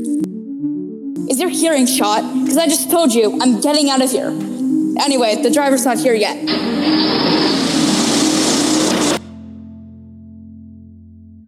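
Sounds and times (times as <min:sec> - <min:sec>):
speech: 0:01.3 - 0:07.2
truck engines starting: 0:06.4 - 0:09.6.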